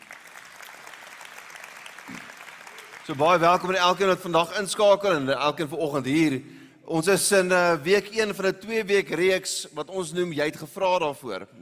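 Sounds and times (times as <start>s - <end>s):
church congregation clapping to welcome the online audience: 0.0s - 4.4s
speech: 3.1s - 11.6s.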